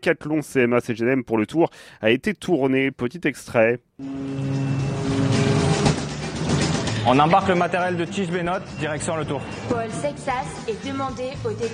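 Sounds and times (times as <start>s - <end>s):
speech: 0.0s - 4.8s, 7.0s - 11.7s
sustained humming tones inside shipping containers: 4.0s - 6.6s
low mechanical drone inside shipping containers: 4.0s - 7.0s.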